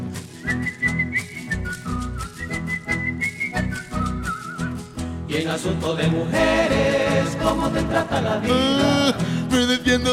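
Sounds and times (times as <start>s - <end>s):
person whistling a song's melody: 0.3s - 5.0s
speech: 0.4s - 0.9s, 5.4s - 10.1s.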